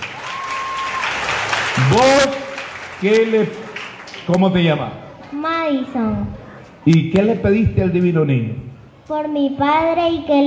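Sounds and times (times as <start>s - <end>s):
audience applause: 0.0s - 4.4s
speech: 1.8s - 2.4s, 3.0s - 3.6s, 4.3s - 10.4s.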